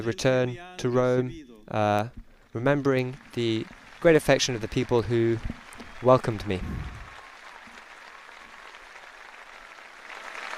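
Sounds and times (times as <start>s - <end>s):
speech: 0.0s - 6.9s
crowd applauding: 2.6s - 10.5s.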